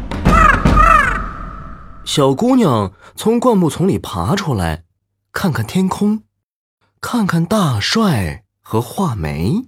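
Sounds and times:
crow cawing: 0.3s - 2.1s
speech: 2.2s - 6.3s, 7.0s - 9.6s.

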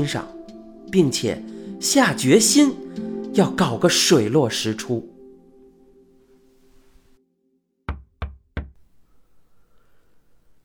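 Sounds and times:
speech: 0.0s - 5.1s
knocking on a door: 7.9s - 8.8s.

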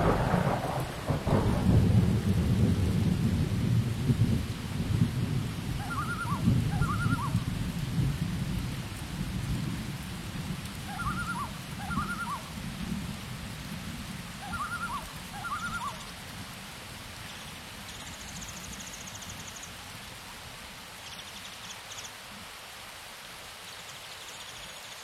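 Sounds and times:
rain falling in a rainforest: 0.0s - 25.0s
bird hooting calls: 5.8s - 7.4s, 10.9s - 12.4s, 14.4s - 16.1s.

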